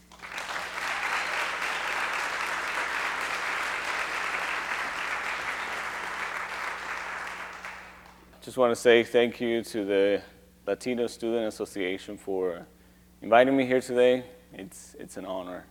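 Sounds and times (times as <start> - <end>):
audience applause at a university student association event welcoming a guest speaker: 0.0 - 8.3
speech: 8.4 - 15.6.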